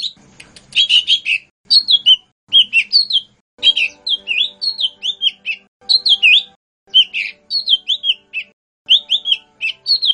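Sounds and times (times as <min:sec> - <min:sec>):
bird song of short bright whistled phrases and rasping buzzy bursts: 0:00.0 - 0:10.1.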